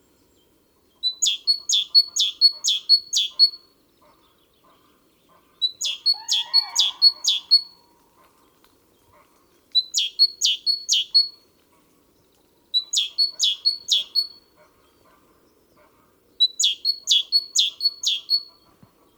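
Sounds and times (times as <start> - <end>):
great tit singing: 1.0 - 3.6, 4.6 - 7.7, 9.8 - 11.3, 12.8 - 15.2, 15.8 - 19.1.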